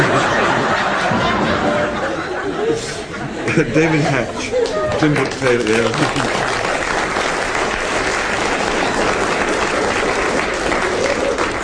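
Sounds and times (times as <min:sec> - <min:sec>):
laughter: 0:00.0 - 0:07.0, 0:08.7 - 0:11.6
speech: 0:03.6 - 0:06.4
audience applause: 0:04.4 - 0:11.6.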